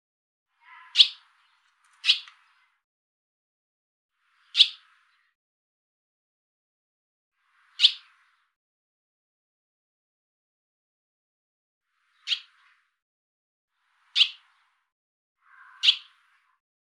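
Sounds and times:
barn swallow chirping with softer buzzy notes: 0:02.0 - 0:02.7, 0:04.4 - 0:05.2, 0:07.7 - 0:08.4, 0:12.1 - 0:12.8, 0:14.1 - 0:14.8, 0:15.4 - 0:16.5.

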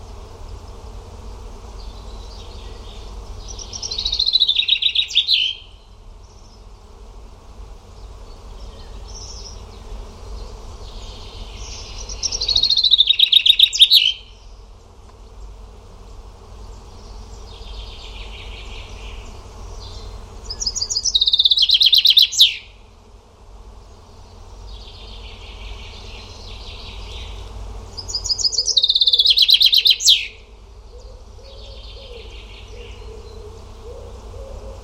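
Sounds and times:
faint buzzing: 0:00.0 - 0:34.8
steady low hum: 0:00.0 - 0:34.8
bird high trill: 0:03.5 - 0:05.7, 0:11.7 - 0:14.4, 0:20.5 - 0:22.7, 0:28.0 - 0:30.4.

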